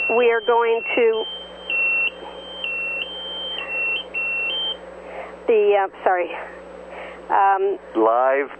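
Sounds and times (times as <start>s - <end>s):
electronic alarm beeps during a live podcast: 0.0s - 4.8s
low background hum: 0.0s - 8.5s
speech: 0.1s - 1.4s, 5.5s - 6.6s, 7.3s - 8.5s.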